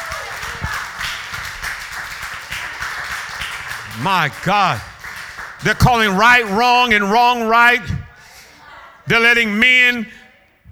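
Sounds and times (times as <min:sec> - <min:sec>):
audience clapping hands: 0:00.0 - 0:07.8
laughter: 0:02.2 - 0:09.6
speech: 0:04.0 - 0:04.9, 0:05.6 - 0:08.0, 0:09.1 - 0:10.2.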